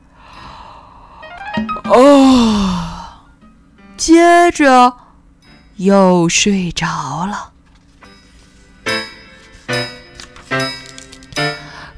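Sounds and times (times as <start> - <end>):
speech: 1.6 - 2.8, 4.0 - 5.0, 5.8 - 7.5
person imitating a yawn: 1.9 - 3.3.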